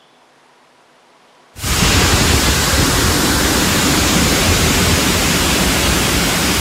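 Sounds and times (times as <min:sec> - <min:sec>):
floodwater rushing through streets: 0:01.6 - 0:06.5.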